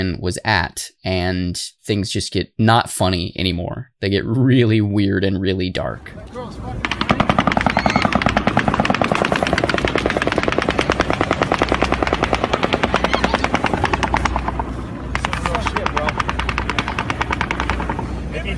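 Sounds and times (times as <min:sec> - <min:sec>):
speech: 0:00.0 - 0:06.9
automatic gunfire in mass shooting footage: 0:06.8 - 0:18.4
people shouting frantically: 0:07.3 - 0:08.3, 0:12.8 - 0:14.1.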